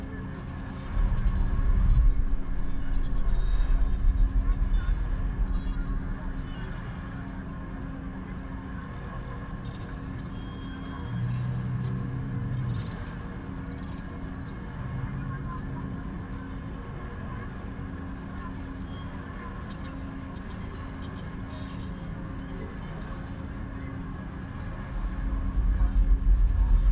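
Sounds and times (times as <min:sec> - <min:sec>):
ambience: 0:00.4 - 0:16.0, 0:22.1 - 0:26.9.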